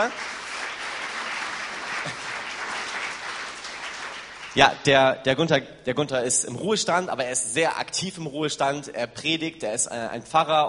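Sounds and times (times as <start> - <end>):
speech: 0.0 - 0.4, 4.6 - 10.6
audience applause: 0.0 - 4.8.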